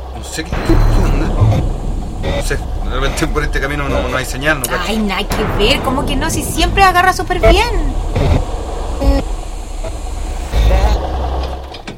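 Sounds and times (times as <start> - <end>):
car engine failing and sputtering: 0.0 - 11.9
speech: 0.2 - 9.3.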